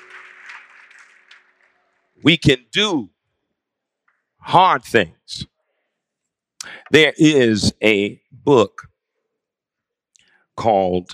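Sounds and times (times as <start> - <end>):
audience hand clapping: 0.0 - 2.3
speech: 2.2 - 3.2, 4.4 - 5.5, 6.6 - 8.9, 10.6 - 11.1.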